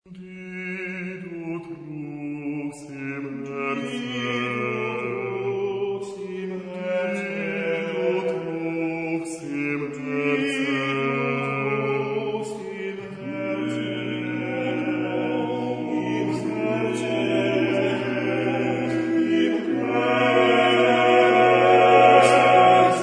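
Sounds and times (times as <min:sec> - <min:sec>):
male voice chorus: 0:02.8 - 0:23.0.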